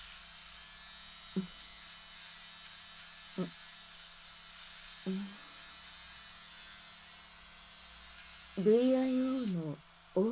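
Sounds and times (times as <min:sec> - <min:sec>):
electric razor shaving body hair: 0:00.0 - 0:10.2
speech: 0:01.4 - 0:01.6, 0:03.4 - 0:03.6, 0:08.6 - 0:10.2.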